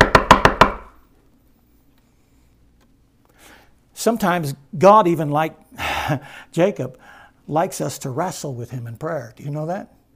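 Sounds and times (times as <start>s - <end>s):
knocks on a door: 0.0s - 0.9s
speech: 4.0s - 10.0s.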